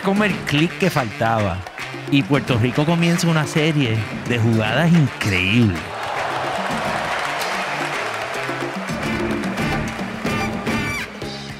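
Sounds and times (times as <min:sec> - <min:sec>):
speech: 0:00.0 - 0:05.9
stadium crowd applauding a basket: 0:00.0 - 0:11.5
scattered shouts: 0:05.9 - 0:08.8.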